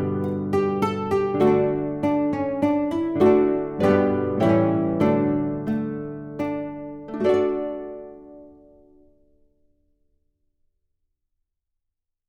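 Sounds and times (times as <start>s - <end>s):
guitar playing: 0.0s - 9.3s.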